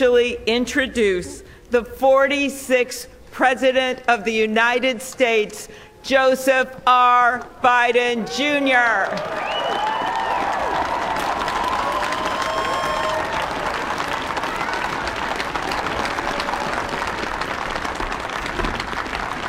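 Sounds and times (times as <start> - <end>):
speech: 0.0 - 9.9
large crowd applauding at inauguration: 8.8 - 19.4
cheers and whistles: 9.1 - 16.8.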